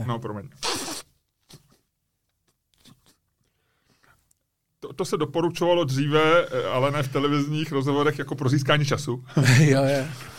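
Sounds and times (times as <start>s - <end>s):
speech: 0.0s - 0.9s, 4.8s - 10.3s
nose blowing: 0.6s - 1.7s
laughter: 9.3s - 10.3s.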